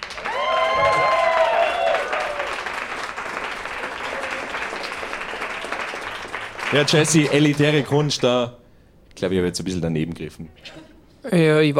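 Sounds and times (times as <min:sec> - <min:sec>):
audience applause: 0:00.0 - 0:08.5
speech: 0:06.7 - 0:08.6, 0:09.2 - 0:11.7.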